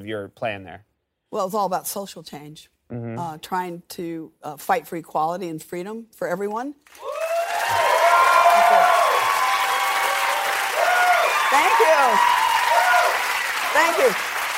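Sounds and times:
speech: 0.0s - 7.8s, 13.8s - 14.3s
audience applause: 6.9s - 14.5s.

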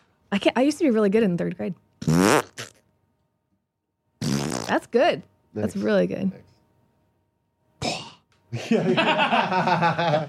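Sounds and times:
speech: 0.3s - 2.3s, 4.7s - 6.5s, 8.5s - 10.2s
person blowing raspberry imitating a fart: 2.0s - 2.8s, 4.2s - 4.8s
laughter: 8.5s - 10.2s.

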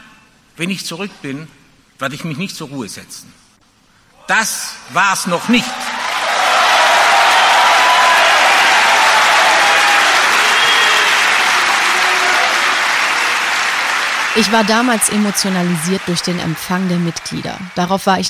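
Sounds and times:
speech: 0.6s - 3.4s, 4.3s - 5.8s, 14.4s - 18.2s
audience applauding: 5.3s - 18.2s.

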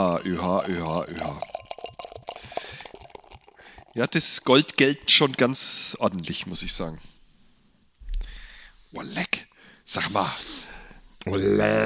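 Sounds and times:
speech: 0.0s - 1.5s, 4.0s - 7.1s, 8.9s - 9.3s, 9.9s - 10.5s, 11.2s - 11.8s
beer pouring into a glass: 0.0s - 4.0s.

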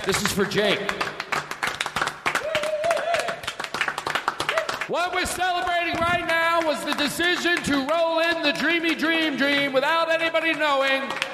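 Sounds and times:
speech: 0.0s - 1.1s, 4.9s - 11.3s
applause: 0.0s - 11.3s.

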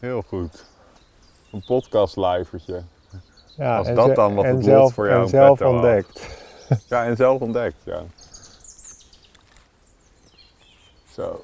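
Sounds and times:
speech: 0.0s - 0.8s, 1.5s - 8.2s, 11.2s - 11.4s
many birds chirping: 0.0s - 11.4s
laughter: 3.9s - 7.4s.

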